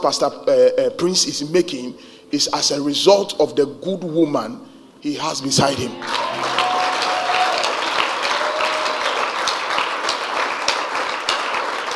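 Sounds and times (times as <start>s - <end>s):
speech: 0.0s - 6.6s
audience clapping: 6.0s - 11.9s.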